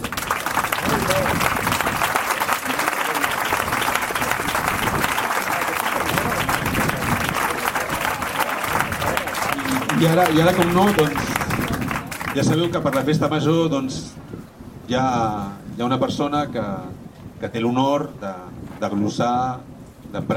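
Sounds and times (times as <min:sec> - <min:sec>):
audience applause: 0:00.0 - 0:13.2
speech: 0:10.0 - 0:11.4, 0:12.4 - 0:14.2, 0:14.9 - 0:20.3.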